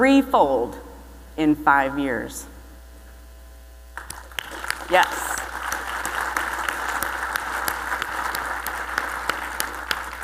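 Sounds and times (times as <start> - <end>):
speech: 0.0 - 2.5, 4.9 - 5.3
audience applause: 4.0 - 10.2.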